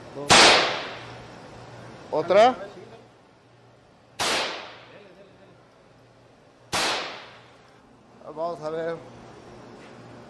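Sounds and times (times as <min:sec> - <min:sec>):
low hum: 0:00.0 - 0:10.2
speech: 0:00.2 - 0:00.6, 0:02.1 - 0:02.8
rifle shots fired at glass: 0:00.3 - 0:01.0, 0:04.2 - 0:04.9, 0:06.7 - 0:07.4.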